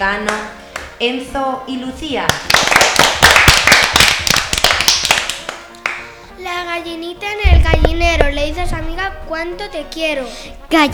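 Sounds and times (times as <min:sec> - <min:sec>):
speech: 0:00.0 - 0:02.9, 0:08.0 - 0:10.9
audience applause: 0:02.5 - 0:05.6.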